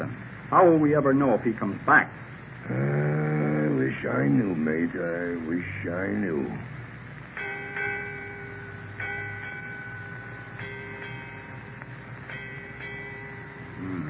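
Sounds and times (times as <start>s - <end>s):
speech: 0.0s - 3.1s, 4.0s - 6.7s
ship's bell striking eight bells: 7.4s - 14.0s.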